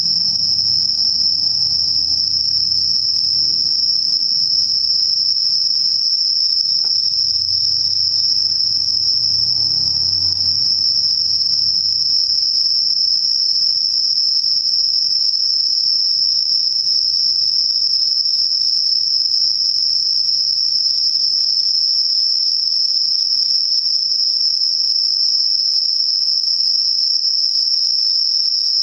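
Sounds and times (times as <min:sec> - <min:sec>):
faint low rumble: 0:00.0 - 0:05.3, 0:06.8 - 0:12.5
insects trilling: 0:00.0 - 0:28.8.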